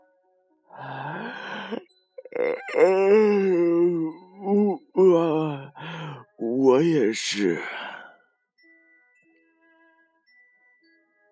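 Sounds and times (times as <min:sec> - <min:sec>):
long yawn: 0:00.8 - 0:06.2
speech: 0:07.1 - 0:08.0.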